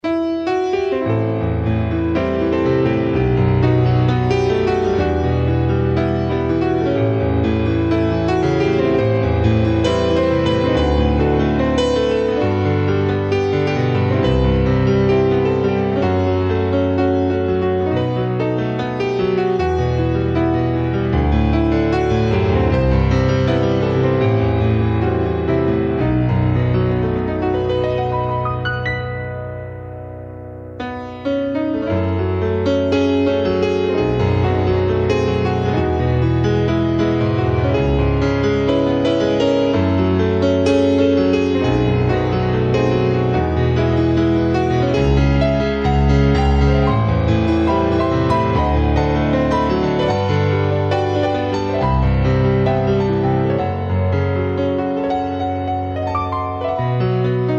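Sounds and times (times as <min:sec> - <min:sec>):
solo piano: 0:00.0 - 0:57.5.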